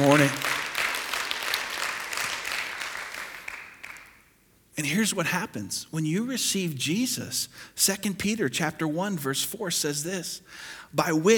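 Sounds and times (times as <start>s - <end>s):
audience applauding: 0.0s - 4.2s
speech: 0.1s - 0.5s, 5.0s - 11.3s.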